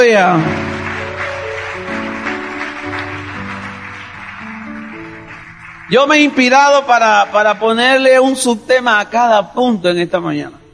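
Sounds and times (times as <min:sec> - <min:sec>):
speech: 0:00.0 - 0:00.7, 0:05.9 - 0:10.6
audience applauding: 0:00.0 - 0:08.2.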